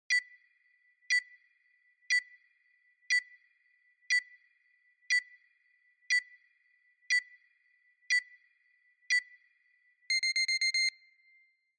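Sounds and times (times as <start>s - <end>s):
countdown: 0.1s - 0.4s, 1.1s - 1.4s, 2.1s - 2.5s, 3.1s - 3.5s, 4.1s - 4.5s, 5.1s - 5.5s, 6.1s - 6.5s, 7.1s - 7.5s, 8.1s - 8.5s, 9.1s - 9.4s, 10.1s - 11.0s.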